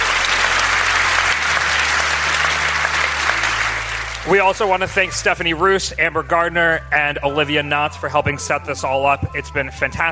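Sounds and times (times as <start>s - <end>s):
crowd applause: 0.0s - 5.0s
speech: 4.2s - 10.0s.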